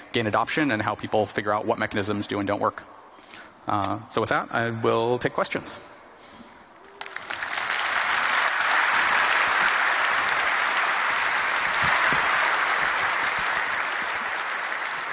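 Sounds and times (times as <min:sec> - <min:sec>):
speech: 0:00.1 - 0:03.0, 0:03.6 - 0:05.9
audience applause after a talk: 0:06.8 - 0:15.1.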